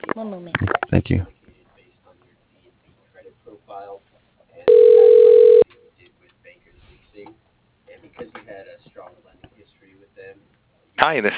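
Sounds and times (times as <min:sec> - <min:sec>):
quiet speech murmuring: 0:00.1 - 0:04.7, 0:05.6 - 0:11.0
speech: 0:00.2 - 0:01.4, 0:11.0 - 0:11.3
telephone ringing: 0:04.7 - 0:05.6.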